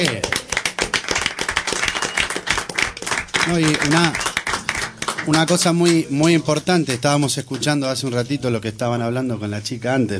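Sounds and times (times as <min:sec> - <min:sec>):
speech: 0:00.0 - 0:00.3, 0:03.4 - 0:04.3, 0:05.2 - 0:10.1
audience applause: 0:00.0 - 0:06.4.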